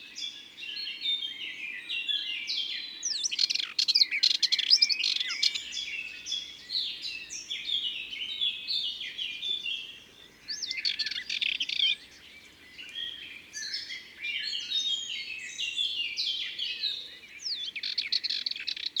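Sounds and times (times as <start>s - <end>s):
Sardinian warbler singing: 0.0s - 18.9s.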